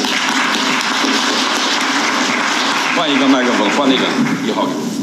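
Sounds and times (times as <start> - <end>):
audience applause: 0.0 - 4.9
speech: 3.0 - 4.9.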